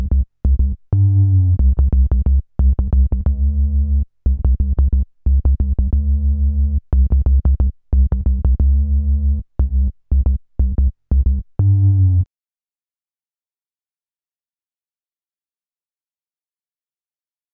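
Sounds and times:
bass: 0.0s - 12.3s.

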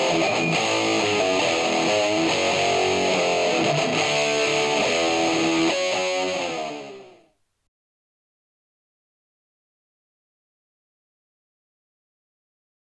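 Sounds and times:
guitar: 0.0s - 7.4s.

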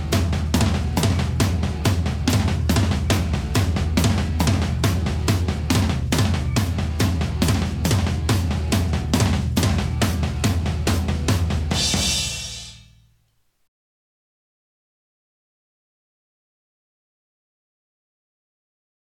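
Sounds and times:
drums: 0.0s - 13.5s.

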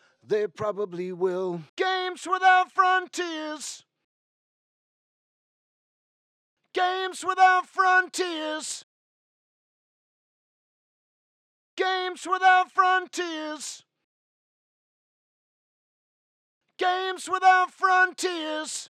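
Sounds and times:
vocals: 0.1s - 3.8s, 6.8s - 8.8s, 11.8s - 13.8s, 16.8s - 18.9s.

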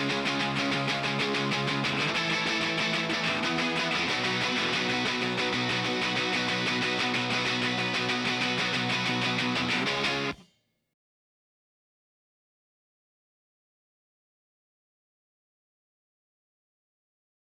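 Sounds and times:
guitars: 0.0s - 10.4s.

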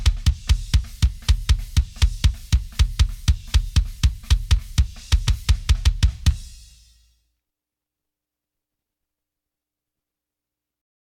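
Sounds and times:
kick drum: 0.0s - 6.8s.

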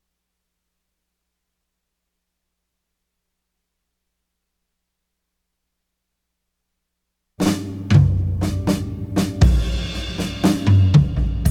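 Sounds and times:
drums: 7.4s - 11.4s.

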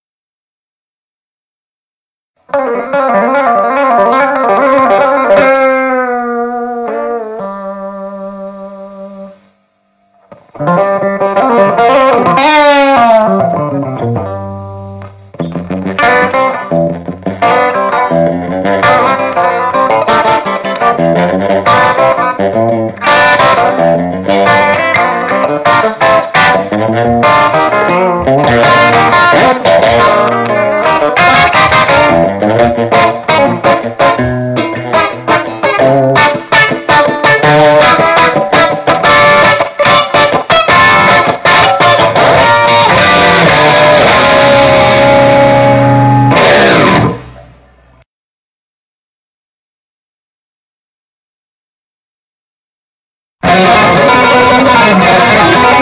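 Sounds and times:
guitar: 2.4s - 48.1s, 53.4s - 55.8s.

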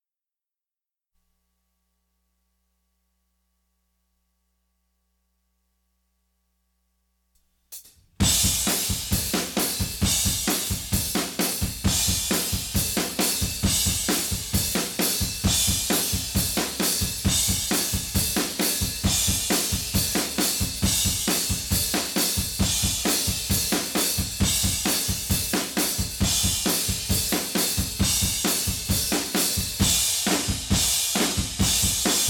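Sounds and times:
drums: 7.7s - 32.2s.

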